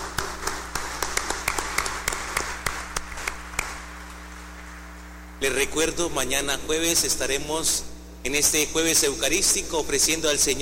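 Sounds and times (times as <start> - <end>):
audience applause: 0.0 - 4.9
speech: 5.4 - 10.6.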